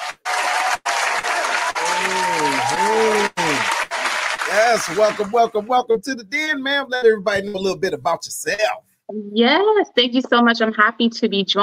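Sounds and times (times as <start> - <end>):
audience applause: 0.0 - 6.6
laughter: 0.9 - 8.8
speech: 4.6 - 11.6.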